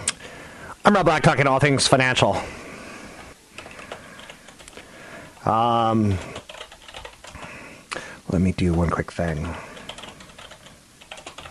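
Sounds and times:
speech: 0.8 - 2.6, 5.4 - 6.4, 8.3 - 9.7
typing a note on a computer keyboard: 3.6 - 4.8, 6.1 - 7.5, 8.6 - 11.4.

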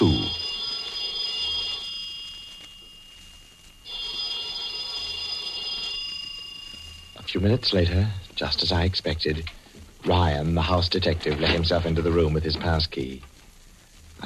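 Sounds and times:
telephone ringing: 0.0 - 8.8
speech: 7.3 - 13.3.

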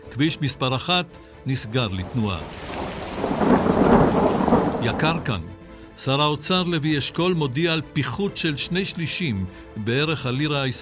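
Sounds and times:
speech: 0.2 - 3.5, 4.8 - 10.7
thunderstorm with rain: 1.9 - 5.4.

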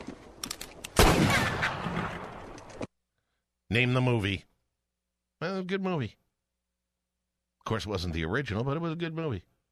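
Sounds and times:
gunshots at cornbread on the prairie in a western movie: 1.0 - 2.5
speech: 3.8 - 4.5, 5.7 - 6.2, 7.7 - 9.5.

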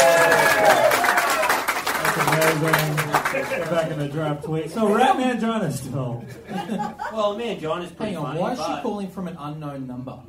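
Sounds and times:
excited voices cheering: 0.0 - 3.7
crowd applause: 0.0 - 4.1
speech: 2.6 - 10.2
laughter: 3.0 - 4.0, 6.2 - 7.5.

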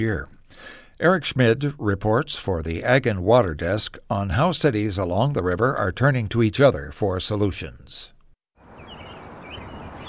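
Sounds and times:
speech: 0.0 - 8.1
birds chattering in trees above the River de Pere Greenway in St. Louis: 8.6 - 10.0.

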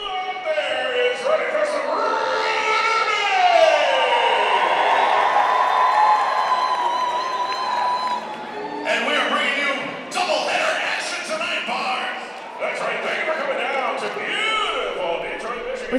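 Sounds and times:
packed crowd roaring in a gymnasium: 0.0 - 15.2
high shouts and whoops: 1.9 - 8.8.

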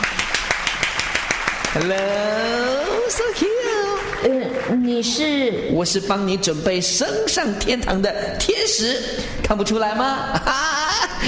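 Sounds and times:
applause: 0.0 - 5.2
speech: 1.8 - 11.2
laughter: 10.3 - 11.2.

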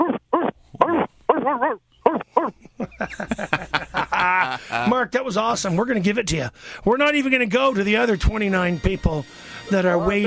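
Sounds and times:
man imitating a dog barking: 0.0 - 2.6, 10.0 - 10.2
speech: 1.5 - 10.2
laughter: 2.6 - 5.0.

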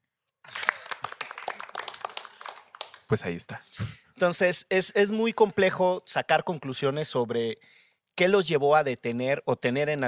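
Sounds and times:
applause: 0.4 - 3.4
speech: 3.1 - 10.0.

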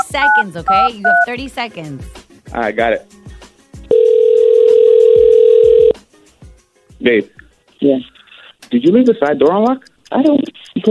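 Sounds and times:
speech: 0.1 - 3.2, 7.0 - 10.8
telephone call ringing: 3.9 - 6.0.

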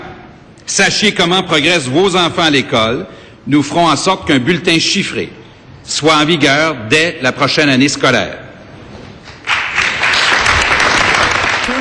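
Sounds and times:
speech: 0.7 - 8.4
audience applause in archival recording: 9.4 - 11.7.

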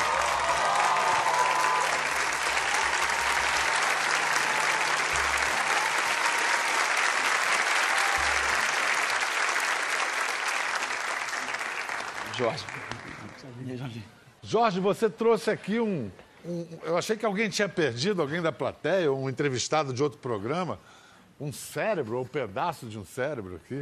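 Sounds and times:
audience applause: 0.0 - 13.4
speech: 12.4 - 23.8.

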